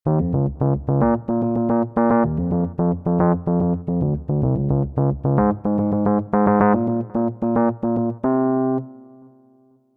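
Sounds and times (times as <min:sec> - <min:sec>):
bass: 0:00.0 - 0:08.8.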